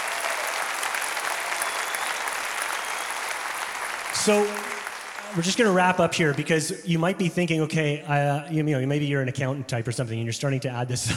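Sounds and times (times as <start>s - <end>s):
audience applause: 0.0s - 6.8s
speech: 4.2s - 4.7s, 5.3s - 11.1s.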